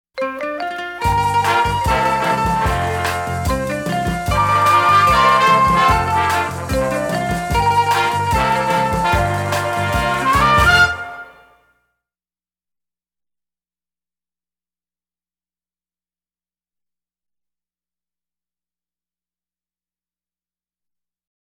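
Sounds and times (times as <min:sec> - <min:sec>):
happy swing music: 0:00.2 - 0:11.6.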